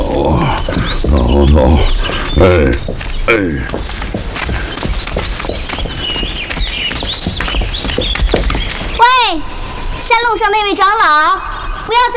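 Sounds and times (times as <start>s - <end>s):
horse hooves clip-clopping on a mountain path: 0.2s - 9.2s
speech: 0.4s - 4.2s, 10.4s - 12.1s.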